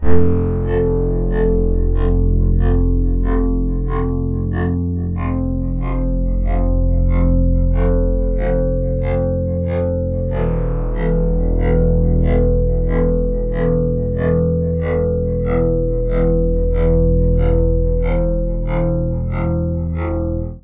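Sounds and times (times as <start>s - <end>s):
polyphonic synth: 0.0s - 20.6s.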